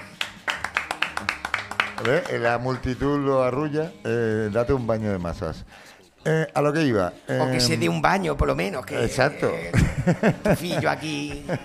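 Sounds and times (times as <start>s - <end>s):
applause: 0.0s - 3.0s
speech: 2.0s - 11.6s
laughter: 9.5s - 11.6s.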